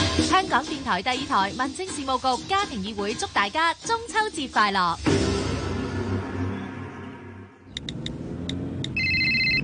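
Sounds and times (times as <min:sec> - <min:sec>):
speech: 0:00.2 - 0:05.2
road noise: 0:05.7 - 0:09.6
car engine rumbling: 0:07.7 - 0:09.6
phone in the car sounding quick high electronic beeps: 0:08.8 - 0:09.6
sustained warbling phone ringtone: 0:08.9 - 0:09.6.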